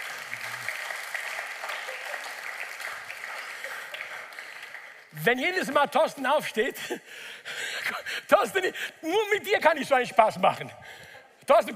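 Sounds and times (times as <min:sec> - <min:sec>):
audience applause: 0:00.0 - 0:05.1
speech: 0:05.2 - 0:11.7.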